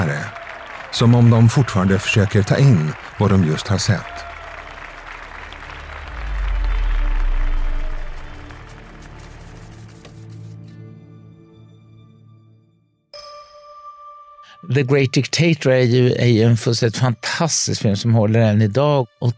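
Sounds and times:
audience applause in cinema: 0.0 - 10.1
speech: 0.1 - 4.3, 14.8 - 19.3.

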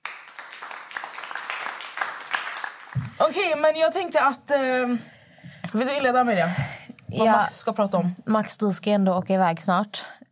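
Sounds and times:
applause sound effect: 0.0 - 3.6
speech: 3.2 - 10.2.

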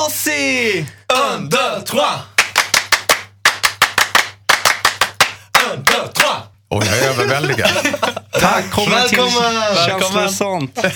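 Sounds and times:
speech: 0.1 - 2.3, 6.7 - 10.9
rhythmic French-style crowd clapping in unison: 2.3 - 6.4
laughter: 6.8 - 10.0, 10.6 - 10.9.

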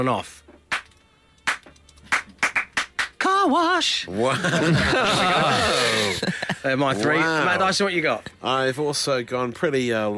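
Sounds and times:
speech: 0.0 - 0.5, 3.4 - 10.1
hand claps to switch lights on: 0.7 - 3.4
laughter: 4.2 - 8.3.

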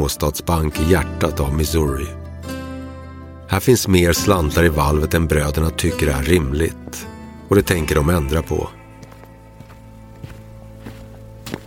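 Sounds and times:
speech: 0.0 - 2.2, 3.5 - 8.8
spurred boots footsteps on a dusty bank floor in Missouri: 7.8 - 11.6.

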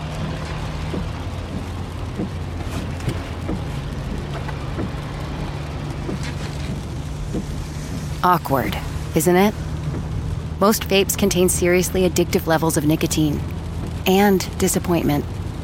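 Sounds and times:
car interior engine and road drone during a ride home: 0.0 - 15.6
faint ticks and taps: 0.1 - 8.1, 9.8 - 10.2, 13.4 - 14.0
speech: 8.2 - 9.6, 10.6 - 15.4.

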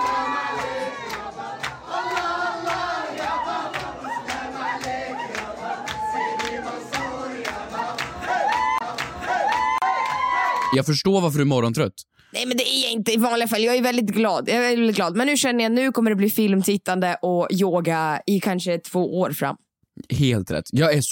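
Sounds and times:
crowd cheering and shouting at Persian-Arab party: 0.0 - 10.8
speech: 10.7 - 21.1.

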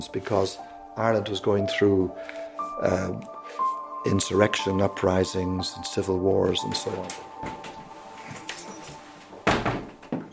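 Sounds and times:
speech: 0.0 - 7.6
keys jangling at the upstairs synagogue in Ireland: 8.4 - 9.0
synagogue door thunks and knocks: 9.4 - 10.3.

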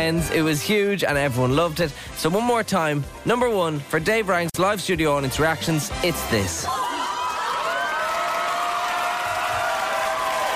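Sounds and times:
speech: 0.0 - 6.8
sitcom studio audience applause: 6.6 - 10.5.

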